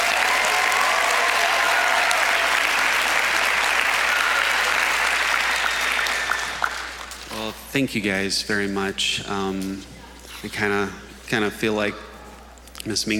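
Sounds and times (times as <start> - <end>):
church congregation applauding: 0.0 - 7.6
speech: 7.7 - 12.1, 12.8 - 13.1.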